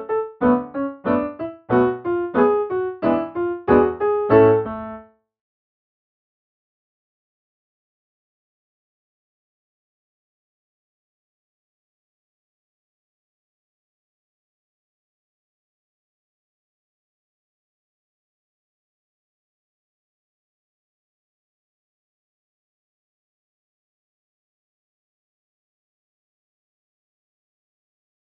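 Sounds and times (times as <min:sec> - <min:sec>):
piano: 0:00.0 - 0:05.2.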